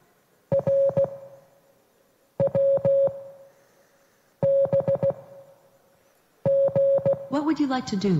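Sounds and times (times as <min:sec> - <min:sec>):
Morse code beeps from a cassette: 0:00.5 - 0:01.3, 0:02.4 - 0:03.4, 0:04.4 - 0:05.4, 0:06.5 - 0:07.3
speech: 0:07.5 - 0:08.1.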